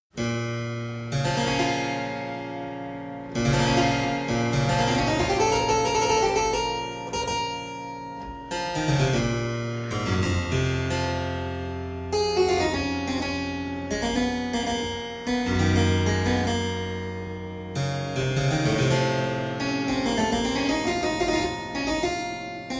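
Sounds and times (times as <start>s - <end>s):
harpsichord prelude: 0.2s - 22.7s.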